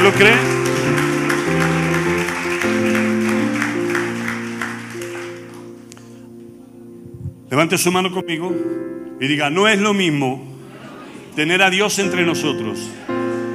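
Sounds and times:
applause: 0.0s - 5.8s
speech: 0.1s - 0.6s, 7.6s - 10.5s, 11.4s - 13.1s.

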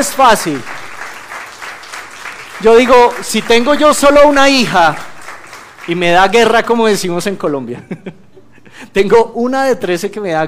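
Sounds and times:
speech: 0.0s - 0.7s, 2.6s - 5.1s, 5.8s - 8.2s, 8.8s - 10.4s
audience applause: 0.0s - 7.3s
laughter: 7.7s - 8.8s.

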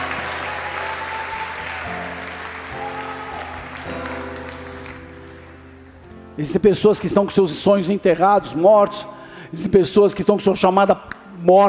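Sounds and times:
audience applauding: 0.0s - 5.9s
speech: 6.4s - 11.6s.

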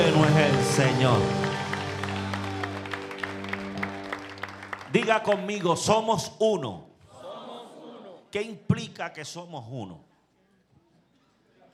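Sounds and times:
church audience applause: 0.0s - 5.9s
speech: 0.5s - 1.5s, 4.9s - 6.9s, 8.3s - 10.1s.

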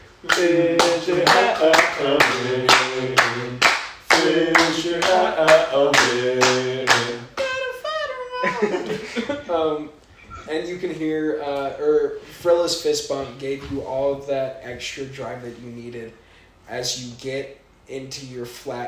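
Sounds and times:
rhythmic hand clapping: 0.0s - 8.8s
voices chanting a repeated phrase: 0.0s - 9.2s
speech: 0.3s - 3.6s, 4.3s - 6.6s, 8.6s - 18.8s
laughter: 8.0s - 9.8s.

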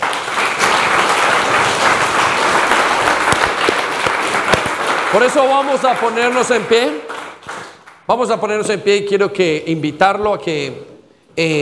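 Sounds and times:
audience applause: 0.0s - 8.0s
speech: 5.2s - 7.1s, 8.1s - 11.6s.

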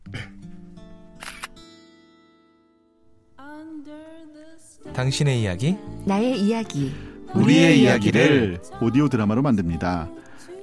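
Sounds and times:
camera shutter snapping as a photo is taken: 1.2s - 1.6s
sustained tonal musical background: 3.8s - 10.6s
speech: 4.9s - 10.2s.

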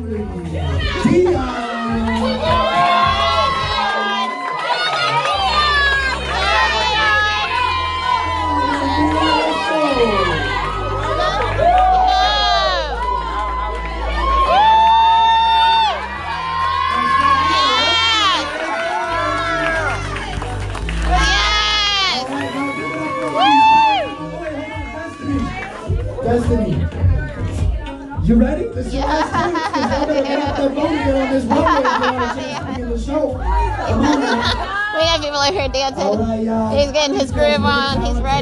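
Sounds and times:
speech: 0.0s - 2.6s, 28.3s - 38.3s
crowd cheering for runway show entrance: 0.0s - 38.3s
laughter: 28.5s - 36.6s.

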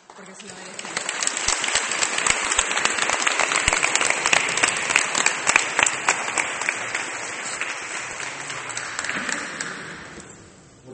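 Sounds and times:
audience applauding: 0.0s - 10.4s
speech: 0.2s - 1.7s.

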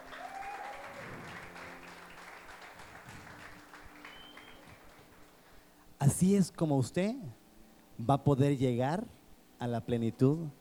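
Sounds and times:
whistles and cheers: 0.0s - 1.5s, 4.0s - 4.8s
crowd applauding: 0.0s - 5.6s
speech: 6.0s - 7.4s, 8.0s - 10.5s.

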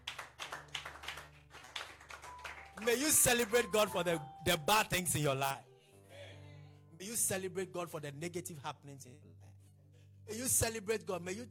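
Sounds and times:
audience clapping in a steady rhythm: 0.0s - 4.2s
speech: 2.8s - 5.7s, 7.0s - 9.4s, 10.3s - 11.5s.

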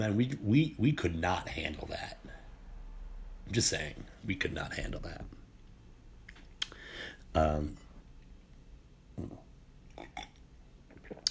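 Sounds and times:
speech: 0.0s - 2.2s, 3.5s - 5.4s, 7.3s - 7.8s, 9.2s - 9.4s
sipping a drink: 9.2s - 11.2s.

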